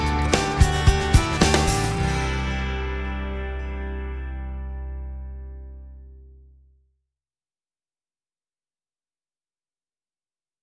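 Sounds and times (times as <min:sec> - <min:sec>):
acoustic rock on-hold music: 0:00.0 - 0:06.4.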